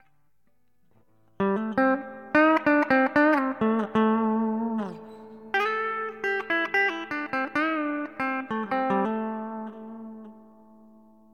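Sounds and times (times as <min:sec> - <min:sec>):
Epiphone guitars: 0:00.0 - 0:11.3.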